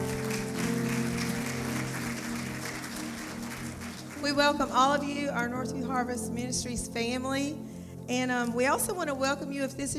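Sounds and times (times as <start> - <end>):
church congregation applauding during a Sunday morning service: 0.0 - 5.2
speech: 4.2 - 9.9.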